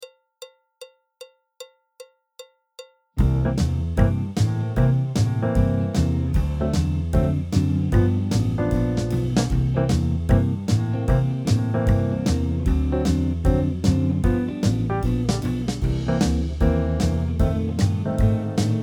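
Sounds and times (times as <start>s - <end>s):
jazz backing track: 3.2s - 18.8s.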